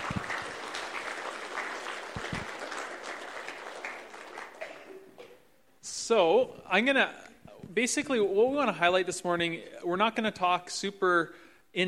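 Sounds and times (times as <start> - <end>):
room full of people clapping: 0.0 - 5.2
speech: 6.1 - 7.2, 7.8 - 11.8.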